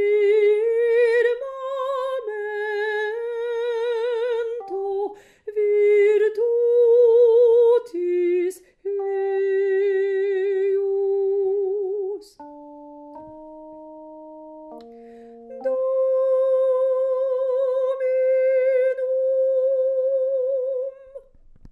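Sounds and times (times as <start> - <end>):
alto voice singing a psalm: 0.0 - 13.8, 14.7 - 21.4.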